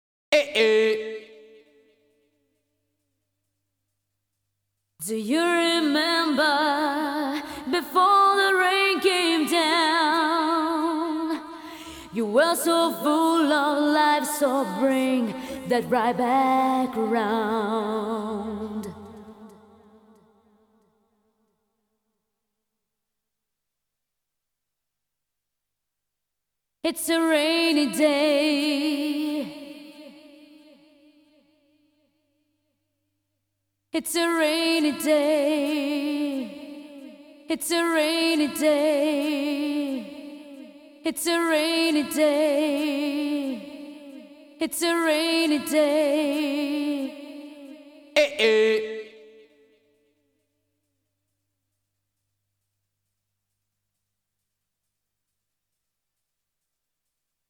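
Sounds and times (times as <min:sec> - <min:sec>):
fast a cappella singing: 0:00.4 - 0:01.6, 0:05.0 - 0:20.4, 0:26.8 - 0:31.4, 0:34.0 - 0:49.4.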